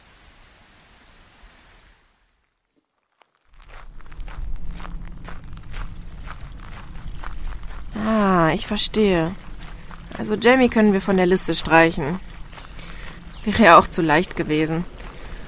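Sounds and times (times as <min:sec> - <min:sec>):
footsteps crunching outdoors: 0:02.6 - 0:15.4
speech: 0:08.5 - 0:09.4, 0:10.2 - 0:12.3, 0:13.5 - 0:15.0.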